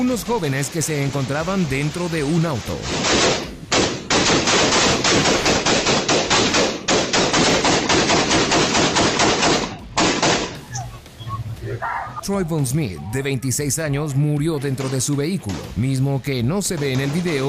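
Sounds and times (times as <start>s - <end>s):
speech: 0.0s - 3.5s, 12.3s - 17.4s
rapid gunfire: 0.3s - 10.6s, 16.6s - 17.4s.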